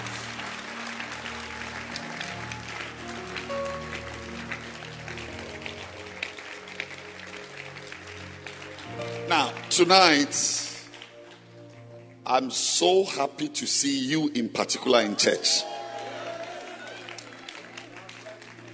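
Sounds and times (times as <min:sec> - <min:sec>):
audience clapping hands: 0:00.0 - 0:13.2, 0:14.9 - 0:18.7
speech: 0:09.3 - 0:10.6, 0:12.3 - 0:15.8.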